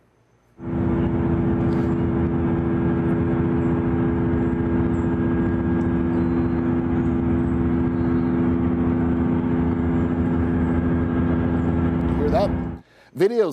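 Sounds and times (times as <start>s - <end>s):
loud steady mechanical hum from a data center facility: 0.6s - 12.8s.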